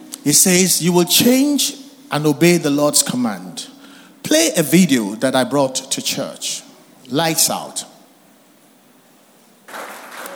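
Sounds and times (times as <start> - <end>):
speech: 0.2 - 3.7, 4.3 - 7.9
weak applause from audience: 9.7 - 10.3.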